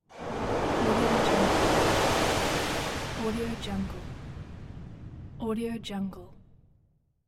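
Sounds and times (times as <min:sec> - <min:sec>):
rolling wave breaking at beach: 0:00.1 - 0:05.3.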